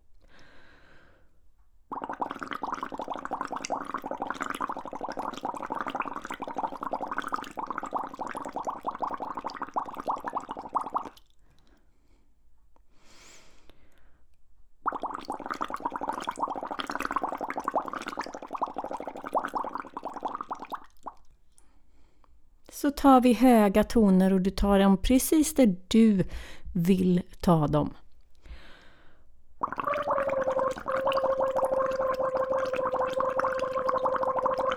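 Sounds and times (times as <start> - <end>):
air blown through a straw into water: 1.9 - 11.3, 14.8 - 21.3, 29.6 - 34.7
speech: 22.8 - 28.0.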